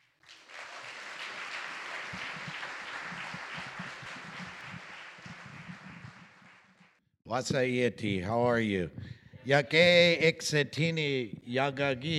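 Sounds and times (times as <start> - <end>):
audience applause welcoming a speaker: 0.2 - 7.0
speech: 7.3 - 12.1.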